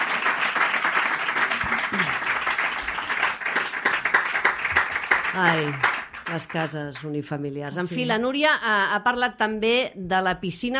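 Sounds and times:
audience applause: 0.0 - 7.1
speech: 5.4 - 10.7.

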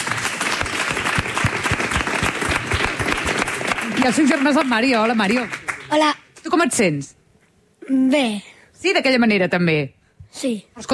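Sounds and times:
audience applause: 0.0 - 6.1
speech: 4.0 - 7.2, 7.9 - 10.9.

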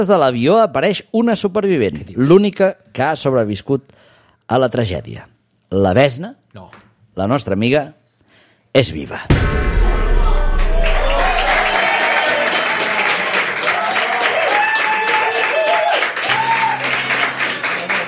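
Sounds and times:
speech: 0.0 - 8.0, 8.7 - 9.8
audience applause: 10.7 - 18.0.

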